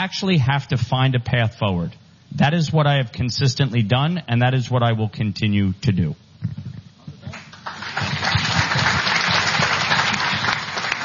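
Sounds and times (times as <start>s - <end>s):
speech: 0.0s - 6.6s
audience applause: 7.3s - 11.0s.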